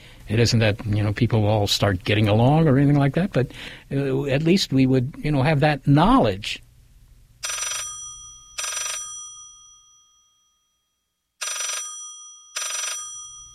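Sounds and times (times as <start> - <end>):
speech: 0.3 - 6.6
telephone ringing: 7.4 - 10.4, 11.4 - 13.5.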